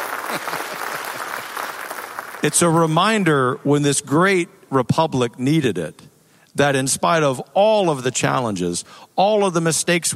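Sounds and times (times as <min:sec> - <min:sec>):
audience applause: 0:00.0 - 0:02.9
speech: 0:00.3 - 0:01.2, 0:02.4 - 0:10.1.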